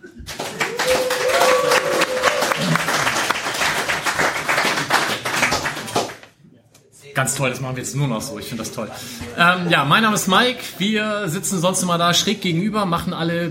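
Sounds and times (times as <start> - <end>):
audience applause: 0.0 - 6.2
speech: 7.2 - 13.4.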